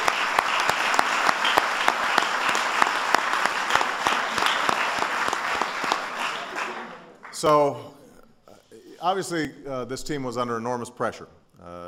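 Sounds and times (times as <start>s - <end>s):
audience applause: 0.0s - 7.6s
speech: 7.4s - 7.9s, 9.0s - 11.8s.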